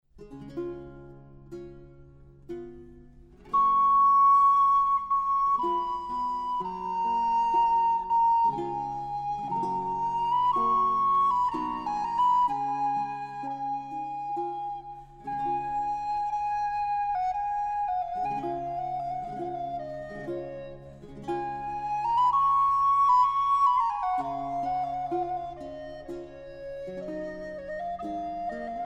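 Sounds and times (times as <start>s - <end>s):
flute: 3.4s - 28.8s.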